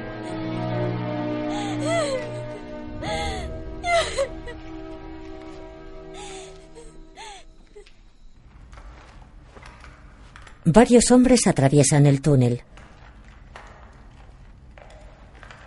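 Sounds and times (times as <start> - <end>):
gasping breaths: 1.4 - 4.9, 6.1 - 7.9
woman sobbing and wailing inconsolably: 1.5 - 5.0, 6.1 - 7.9
speech: 10.6 - 12.7.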